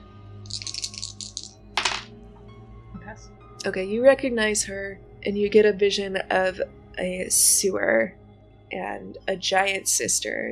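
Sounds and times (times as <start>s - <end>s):
dice rolling: 0.5s - 2.1s
speech: 3.1s - 10.5s.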